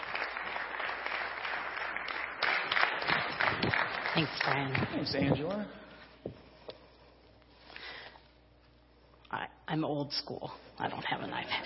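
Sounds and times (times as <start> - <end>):
audience applause welcoming a woman invited up to share: 0.0 - 5.2
speech: 4.2 - 5.8, 9.7 - 11.6.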